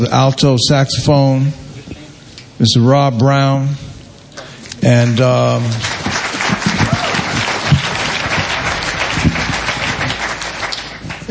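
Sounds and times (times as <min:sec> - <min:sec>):
speech: 0:00.0 - 0:01.6, 0:02.6 - 0:03.8, 0:04.8 - 0:06.0
audience applause at a jazz performance featuring an alto saxophonist: 0:05.0 - 0:11.2.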